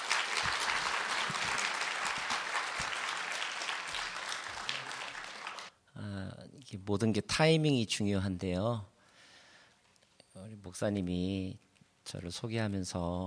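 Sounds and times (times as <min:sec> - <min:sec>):
crowd applauding: 0:00.0 - 0:05.7
speech: 0:06.7 - 0:08.9, 0:10.8 - 0:13.2.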